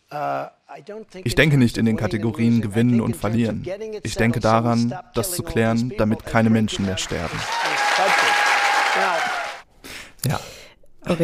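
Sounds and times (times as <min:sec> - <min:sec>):
speech: 0:00.1 - 0:08.2, 0:10.2 - 0:11.2
large crowd cheering at a rally: 0:06.6 - 0:09.6
voices shouting: 0:07.4 - 0:09.6.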